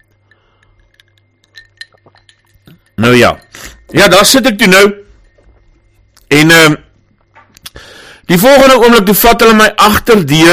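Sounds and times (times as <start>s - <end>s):
whisky glass clinking during a sip: 0.0s - 5.6s
low steady hum: 0.0s - 8.6s
speech: 3.0s - 5.0s, 6.3s - 6.8s, 8.3s - 10.5s.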